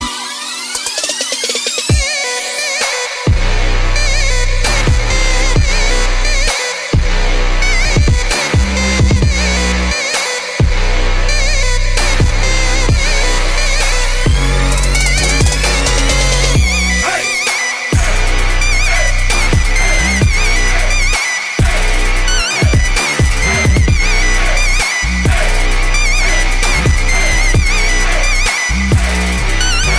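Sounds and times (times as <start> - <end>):
trap beat: 0.0 - 29.9.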